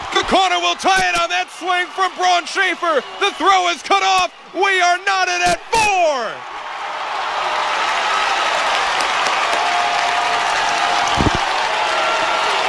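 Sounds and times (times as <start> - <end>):
stadium crowd cheering at Neuroscience Group Field: 0.0 - 12.6
speech: 0.4 - 6.5.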